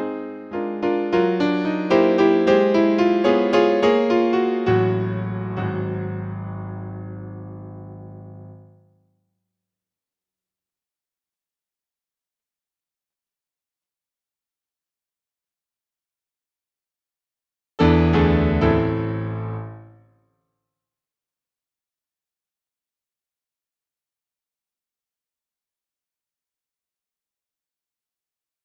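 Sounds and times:
piano: 0.0 - 9.0, 17.8 - 20.1.

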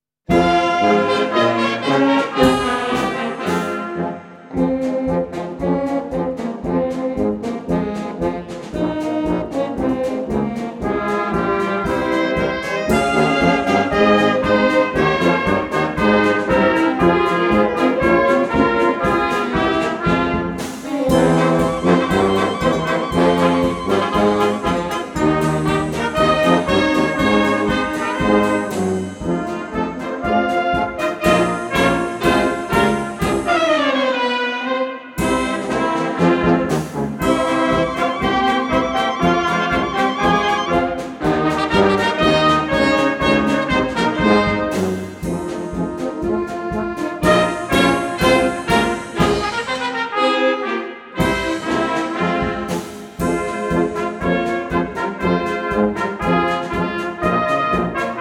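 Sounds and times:
brass band: 0.2 - 58.1.

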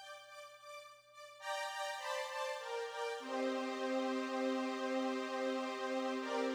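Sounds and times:
synth: 1.4 - 6.5.

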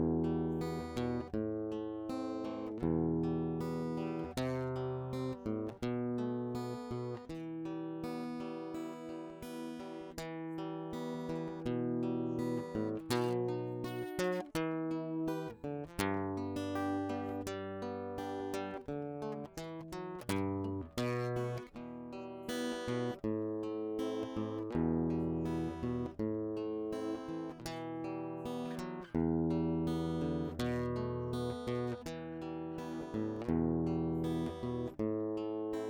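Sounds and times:
guitar fingerpicking: 0.0 - 35.8.

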